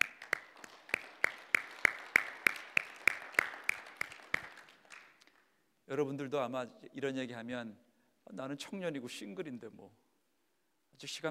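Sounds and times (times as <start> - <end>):
audience clapping: 0.0 - 5.5
speech: 5.9 - 10.0, 11.0 - 11.2.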